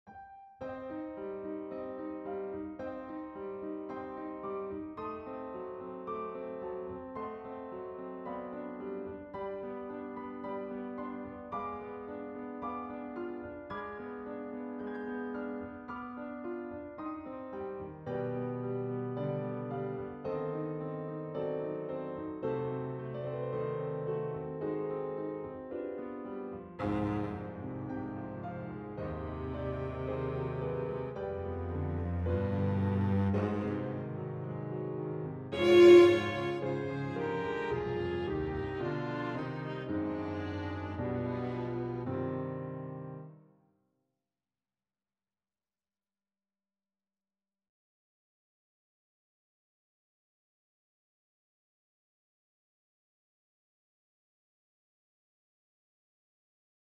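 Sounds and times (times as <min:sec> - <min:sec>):
piano quartet rondo in C minor: 0:00.2 - 0:43.4.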